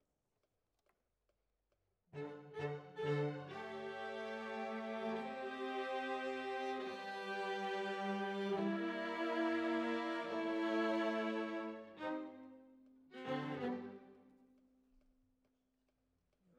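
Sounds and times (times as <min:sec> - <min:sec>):
violas: 0:02.2 - 0:12.5, 0:13.1 - 0:14.0.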